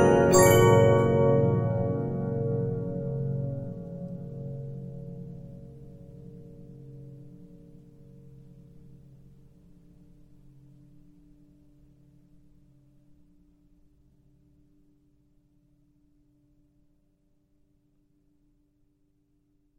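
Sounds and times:
Regina 15-inch disc music box: 0:00.0 - 0:03.9.

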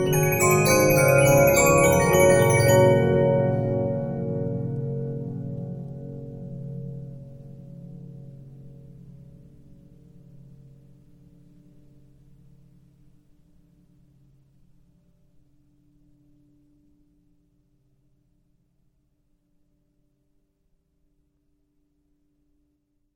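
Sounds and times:
Regina 15-inch disc music box: 0:00.0 - 0:04.5.

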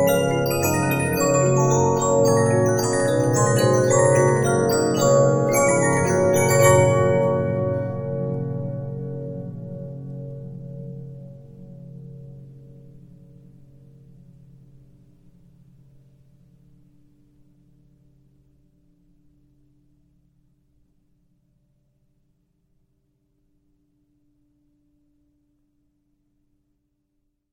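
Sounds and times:
Regina 15-inch disc music box: 0:00.0 - 0:08.4.

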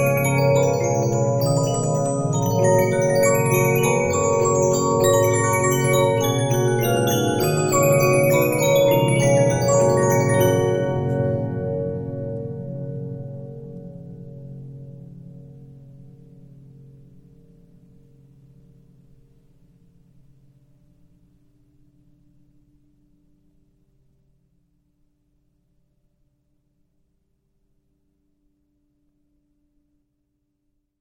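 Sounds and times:
Regina 15-inch disc music box: 0:00.0 - 0:12.4.

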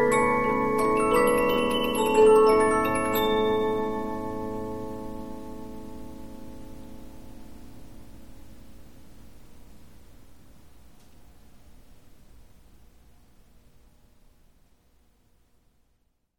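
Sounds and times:
Polyphon 15 inch disc music box playing: 0:00.0 - 0:05.4.

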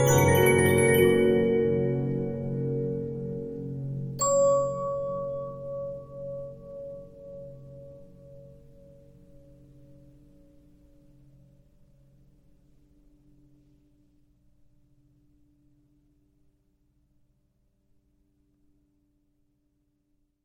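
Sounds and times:
Regina 15-inch disc music box: 0:00.0 - 0:02.6, 0:04.2 - 0:07.7.

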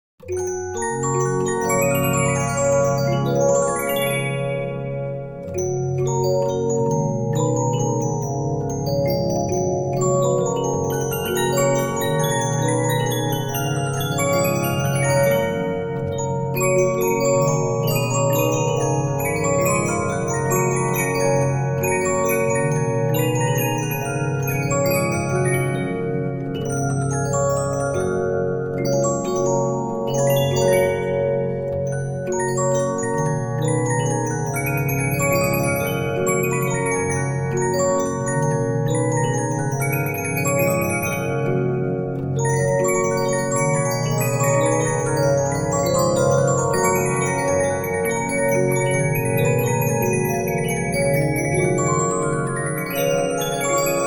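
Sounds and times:
Regina 15-inch disc music box: 0:00.2 - 0:54.0.

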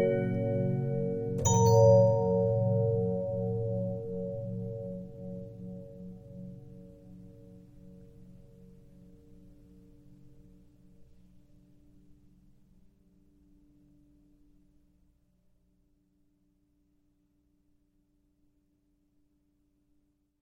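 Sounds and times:
Regina 15-inch disc music box: 0:00.0 - 0:05.2.

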